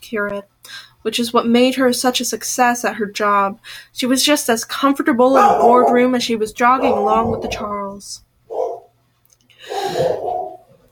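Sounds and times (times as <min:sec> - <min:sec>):
speech: 0:00.1 - 0:08.3
dog barking: 0:05.4 - 0:06.1, 0:06.8 - 0:07.6, 0:08.5 - 0:08.9, 0:09.7 - 0:10.7.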